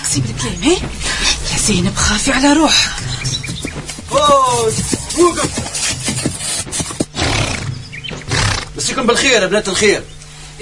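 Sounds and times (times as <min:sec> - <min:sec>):
dense noisy background: 0:00.0 - 0:10.5
speech: 0:00.1 - 0:03.3, 0:04.1 - 0:06.0, 0:08.8 - 0:10.5
horse neighing: 0:03.0 - 0:08.8.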